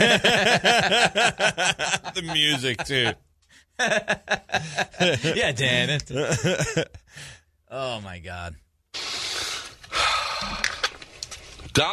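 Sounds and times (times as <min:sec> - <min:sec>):
laughter: 0:00.0 - 0:03.2, 0:03.8 - 0:07.0
speech: 0:00.2 - 0:09.1, 0:11.8 - 0:11.9
heavy breathing: 0:07.0 - 0:07.5, 0:09.0 - 0:11.0.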